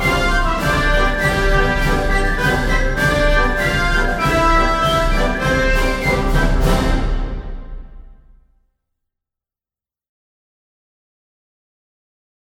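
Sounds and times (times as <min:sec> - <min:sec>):
diplomatic success music: 0:00.0 - 0:08.4.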